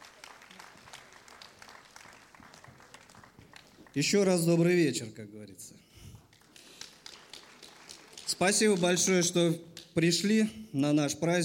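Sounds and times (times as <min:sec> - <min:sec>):
audience applause: 0:00.0 - 0:04.5, 0:06.2 - 0:09.3
speech: 0:04.0 - 0:06.0, 0:08.4 - 0:11.4.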